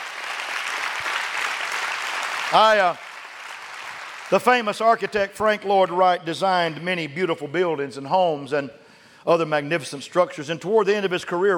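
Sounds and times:
audience clapping hands: 0.0 - 5.2
speech: 2.5 - 3.0, 4.3 - 11.5.

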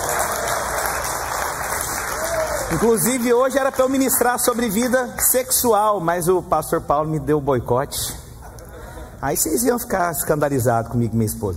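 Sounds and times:
crowd applause: 0.0 - 4.3
speech: 2.7 - 8.2, 9.2 - 11.5.

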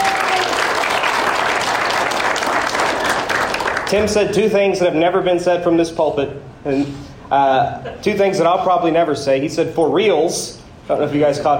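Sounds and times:
church congregation applause after a message: 0.0 - 4.1
speech: 3.9 - 11.5.

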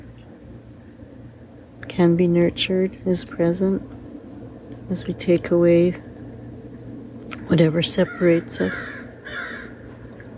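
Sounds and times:
speech: 1.8 - 4.0, 4.9 - 6.1, 7.5 - 9.0
crows cawing: 8.0 - 10.0.

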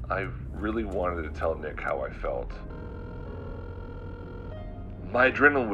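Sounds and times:
speech: 0.1 - 2.9, 5.1 - 5.7
telephone ringing on a call: 2.6 - 5.3.

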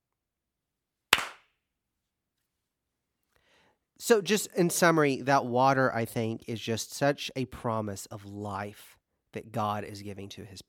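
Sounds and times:
single hand clap for sync: 1.1 - 1.5
speech: 4.0 - 10.6.

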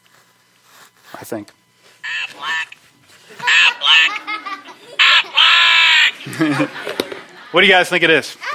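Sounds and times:
speech: 1.2 - 1.6, 6.2 - 8.5
toy duck quacking: 2.0 - 2.8, 3.4 - 4.2, 5.0 - 6.2
laughter: 3.2 - 7.9.

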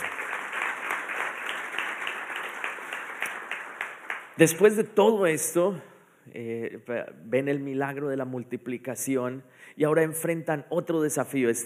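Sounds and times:
audience applause: 0.0 - 4.4
speech: 4.4 - 11.6.

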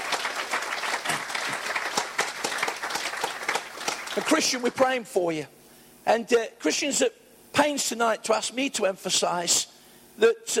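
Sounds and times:
audience round of applause: 0.0 - 4.7
speech: 4.2 - 10.5.

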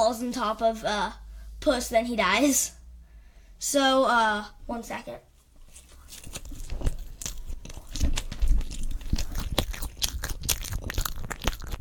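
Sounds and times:
speech: 0.1 - 2.8, 3.6 - 5.3
person chewing marshmallows: 5.7 - 11.7.

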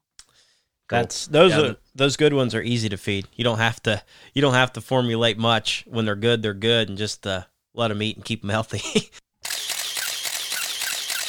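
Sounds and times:
speech: 0.9 - 9.2
camera shutter firing in a rapid burst: 9.4 - 11.2.

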